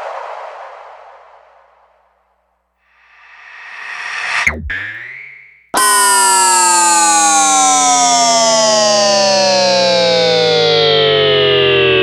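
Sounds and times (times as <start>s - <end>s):
EDM sound effect: 3.0s - 11.9s.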